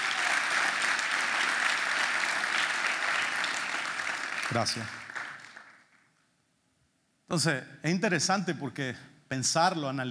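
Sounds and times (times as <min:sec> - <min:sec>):
audience applause: 0:00.0 - 0:05.9
speech: 0:04.5 - 0:05.0, 0:07.3 - 0:10.1.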